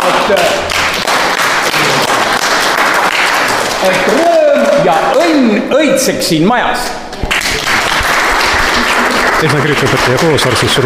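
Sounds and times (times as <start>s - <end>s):
speech: 0.1s - 0.6s, 3.8s - 7.0s, 9.4s - 10.8s
people applauding at a community ceremony: 0.3s - 4.8s, 7.3s - 10.8s.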